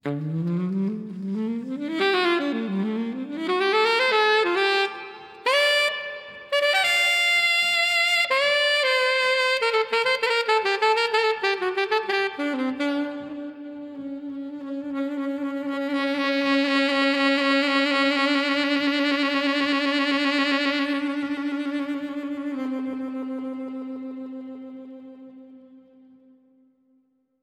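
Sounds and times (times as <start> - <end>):
saxophone: 0.0 - 27.0.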